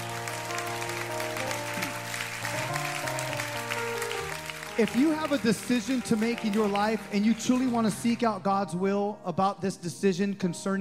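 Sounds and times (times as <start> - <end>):
audience clapping: 0.0 - 8.4
speech: 4.8 - 10.7.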